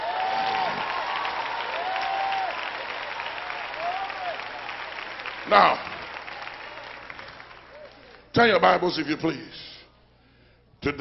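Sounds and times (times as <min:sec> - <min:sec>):
audience clapping hands: 0:00.0 - 0:08.8
speech: 0:05.5 - 0:05.9, 0:08.4 - 0:09.7.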